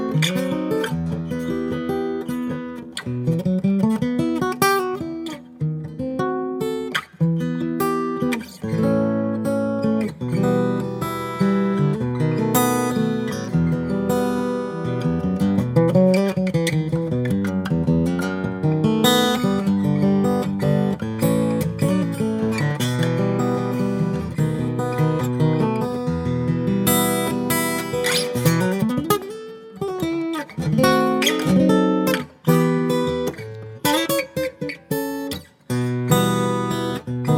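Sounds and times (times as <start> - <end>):
Guild F 55 Maple guitar: 0.0 - 37.3.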